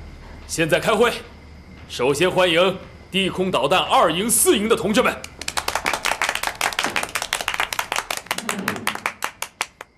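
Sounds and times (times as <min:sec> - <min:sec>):
speech: 0:00.5 - 0:01.3, 0:01.9 - 0:05.3
applause from a meeting audience: 0:05.2 - 0:09.9.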